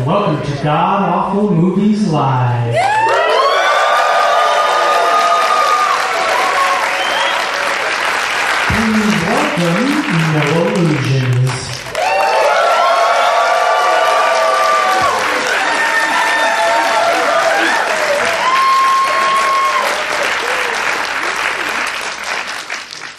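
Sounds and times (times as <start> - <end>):
speech: 0.0 - 3.0, 9.6 - 11.3
crowd applause at a live show in Toronto: 2.8 - 23.1
whistles: 6.8 - 7.6.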